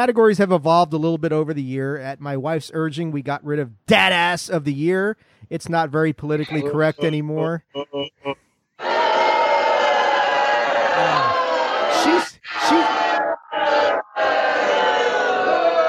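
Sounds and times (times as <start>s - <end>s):
speech: 0.0s - 8.9s
studio audience booing: 8.8s - 15.8s.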